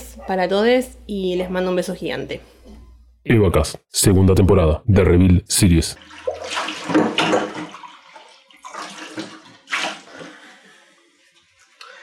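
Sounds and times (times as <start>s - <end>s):
speech: 0.2s - 2.5s, 3.2s - 7.4s
running tap water splashing over dishes: 6.0s - 10.6s.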